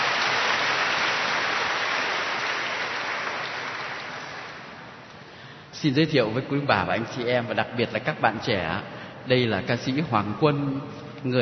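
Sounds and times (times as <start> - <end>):
applause welcoming a singer: 0.0 - 5.0
speech: 5.8 - 11.4.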